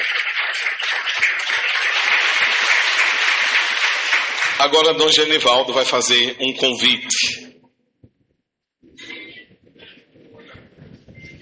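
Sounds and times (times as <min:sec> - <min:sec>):
audience applause: 0:00.0 - 0:05.1
speech: 0:04.6 - 0:07.4.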